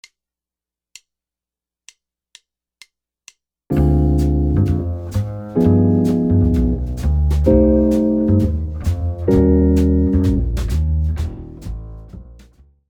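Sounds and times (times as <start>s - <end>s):
jazz guitar comping: 3.7s - 12.5s.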